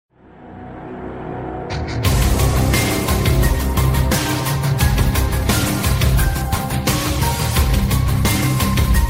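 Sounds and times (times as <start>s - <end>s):
evil progressive ringtone: 1.7s - 9.0s.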